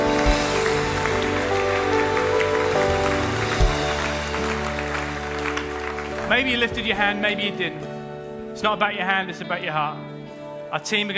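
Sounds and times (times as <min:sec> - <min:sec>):
church congregation applauding after a prayer: 0:00.0 - 0:07.6
sustained musical tones: 0:00.0 - 0:08.5
speech: 0:06.4 - 0:07.9, 0:08.6 - 0:10.1, 0:10.7 - 0:11.1.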